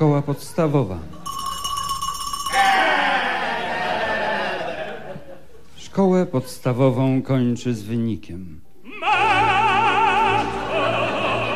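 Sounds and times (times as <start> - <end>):
speech: 0.0 - 1.2, 6.0 - 9.5
steady bell-like ringing: 1.2 - 3.0
laughter: 2.8 - 5.6, 9.1 - 11.5.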